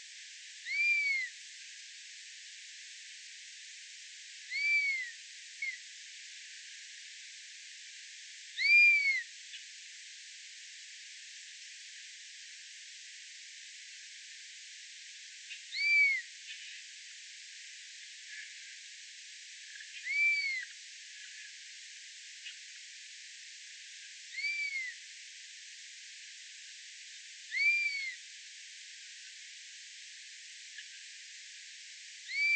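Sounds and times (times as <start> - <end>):
buzzard bird songs: 0.6 - 1.3, 4.5 - 5.8, 8.6 - 9.6, 15.5 - 16.8, 19.7 - 21.5, 24.3 - 25.0, 27.5 - 28.2, 32.3 - 32.5.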